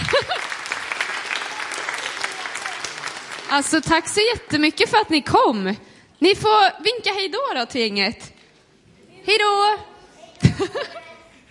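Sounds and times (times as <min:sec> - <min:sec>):
laughter: 0:00.0 - 0:00.7, 0:10.4 - 0:11.4
audience applause: 0:00.0 - 0:04.0
speech: 0:03.5 - 0:08.3, 0:09.2 - 0:09.9, 0:10.6 - 0:11.1.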